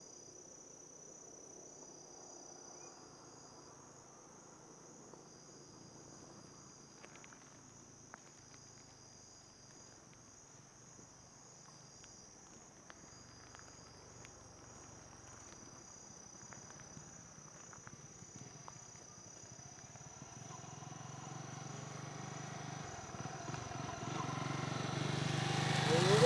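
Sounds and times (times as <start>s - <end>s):
motorcycles passing: 19.4s - 26.2s.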